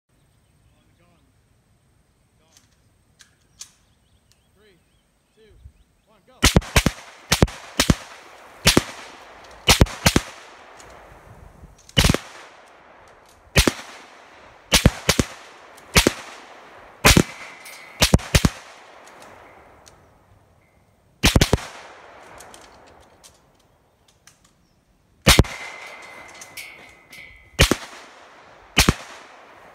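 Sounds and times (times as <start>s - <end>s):
bullets landing nearby: 6.4s - 11.1s, 11.8s - 20.1s, 21.2s - 24.6s, 25.3s - 29.7s.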